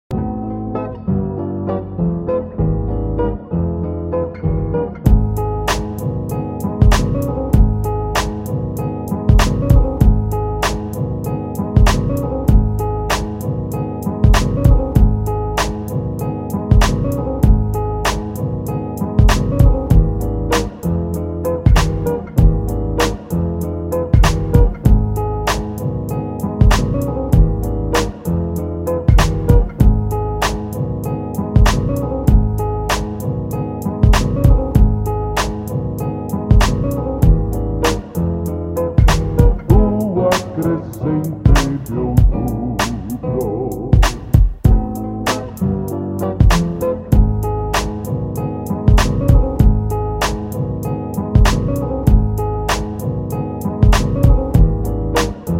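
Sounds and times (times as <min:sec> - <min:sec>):
instrumental music: 0:00.1 - 0:55.5.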